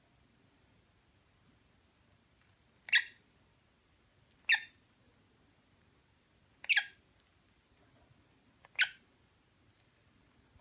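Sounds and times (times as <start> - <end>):
lovebird chirping mating call: 2.8 - 3.2, 4.4 - 4.8, 6.6 - 7.0, 8.7 - 9.0.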